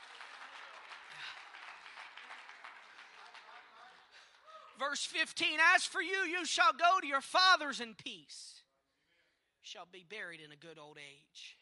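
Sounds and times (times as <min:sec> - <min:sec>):
audience clapping hands: 0:00.0 - 0:04.9
speech: 0:04.8 - 0:08.6, 0:09.7 - 0:11.6.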